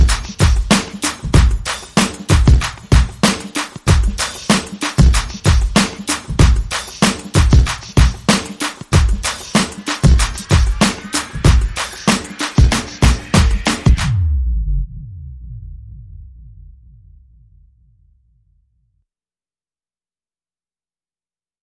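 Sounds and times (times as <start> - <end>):
drums and percussion: 0.0 - 14.4.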